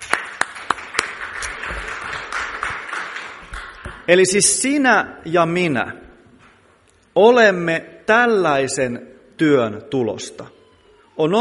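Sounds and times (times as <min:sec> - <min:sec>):
audience applause: 0:00.0 - 0:04.1
speech: 0:04.1 - 0:06.0, 0:07.2 - 0:10.6, 0:11.2 - 0:11.3.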